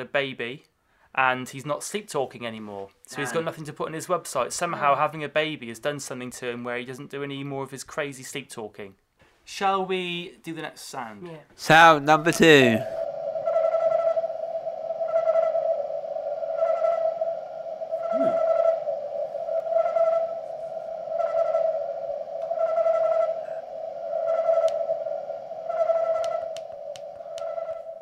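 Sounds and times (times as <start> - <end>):
speech: 0.0 - 13.0
crickets chirping slowed down: 12.3 - 28.0.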